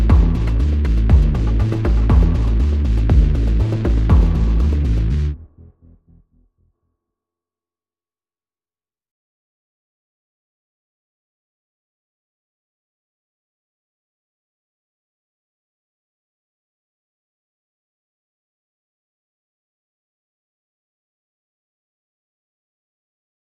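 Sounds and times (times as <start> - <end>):
drums: 0.0 - 5.3
bass: 0.0 - 6.8.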